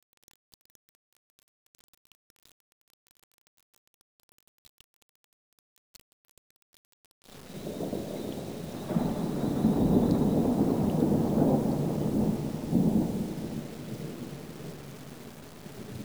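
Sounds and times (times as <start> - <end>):
thunder: 7.3 - 16.0.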